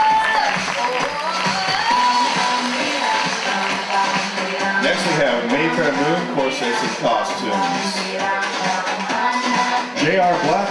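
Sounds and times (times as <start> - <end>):
audience applause: 0.0 - 4.8
speech: 5.2 - 9.0, 10.0 - 10.6.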